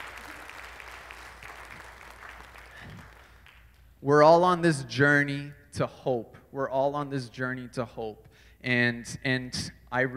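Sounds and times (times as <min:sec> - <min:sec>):
audience clapping: 0:00.0 - 0:04.0
speech: 0:04.0 - 0:10.1.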